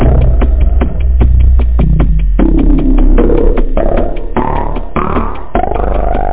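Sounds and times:
music loop: 0.0s - 6.3s.

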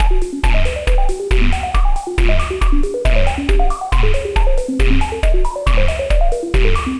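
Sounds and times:
alien techno music: 0.0s - 6.9s.

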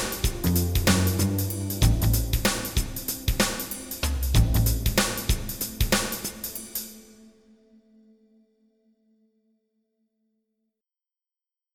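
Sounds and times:
jazz music: 0.0s - 7.0s.

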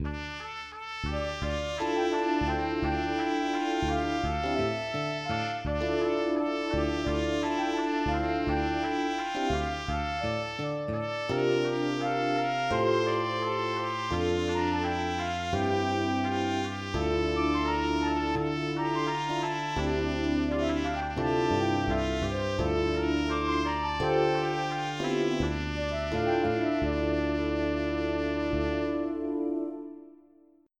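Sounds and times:
tune: 0.0s - 30.2s.

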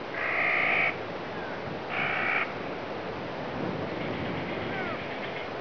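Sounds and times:
birds: 0.1s - 2.7s, 3.8s - 5.5s.

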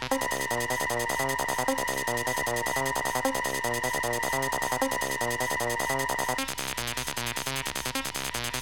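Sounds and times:
acid rap: 0.1s - 8.6s.

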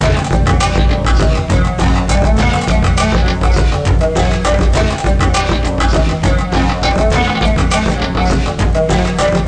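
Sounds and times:
boot music loop: 0.0s - 9.4s.

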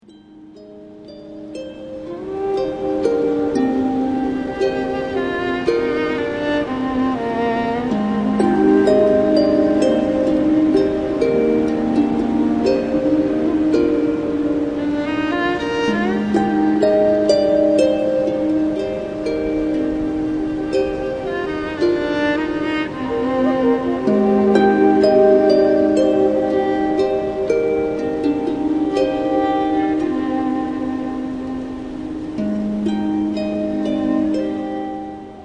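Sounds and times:
harp song: 0.0s - 35.4s.

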